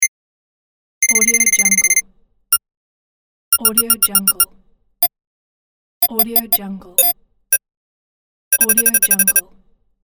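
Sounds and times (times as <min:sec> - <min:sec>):
counter beeps: 0:01.0 - 0:02.0, 0:03.5 - 0:04.4, 0:06.1 - 0:07.1, 0:08.5 - 0:09.4.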